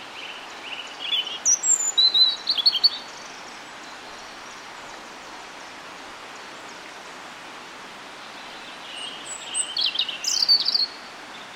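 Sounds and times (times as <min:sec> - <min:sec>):
European robin singing: 0:00.0 - 0:05.2, 0:08.2 - 0:11.5
steady hiss: 0:00.0 - 0:11.5.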